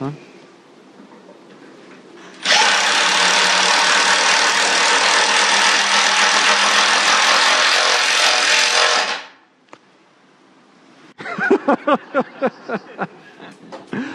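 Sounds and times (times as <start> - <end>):
impact driver running: 2.4 - 9.4
laughter: 11.2 - 14.1.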